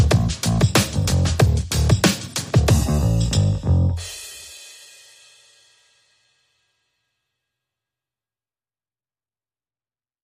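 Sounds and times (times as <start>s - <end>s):
bass: 0.0s - 4.2s
drums: 0.0s - 6.0s.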